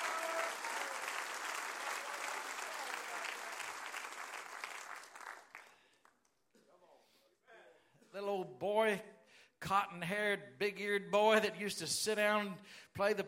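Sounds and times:
audience clapping hands: 0.0 - 6.5
speech: 8.6 - 13.2.

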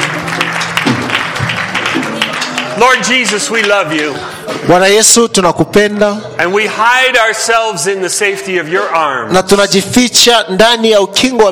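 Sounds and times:
church audience clapping: 0.0 - 4.5
speech: 2.8 - 11.5.

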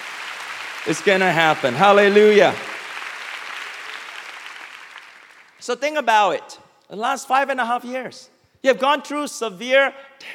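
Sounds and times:
audience clapping: 0.0 - 5.6
speech: 0.8 - 2.7, 5.6 - 10.3.

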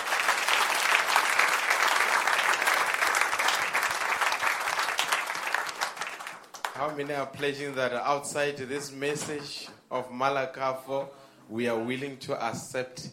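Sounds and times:
audience applause: 0.0 - 7.0
speech: 6.8 - 13.1.

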